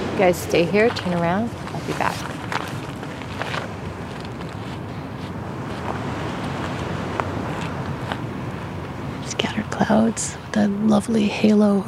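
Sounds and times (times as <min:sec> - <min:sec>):
gently lapping waves of a bay: 0:00.0 - 0:10.6
speech: 0:00.2 - 0:02.4, 0:09.8 - 0:11.8.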